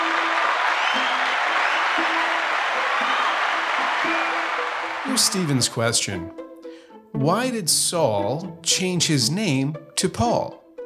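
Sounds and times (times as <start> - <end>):
applause: 0.0 - 5.8
speech: 5.0 - 6.4, 7.1 - 10.6.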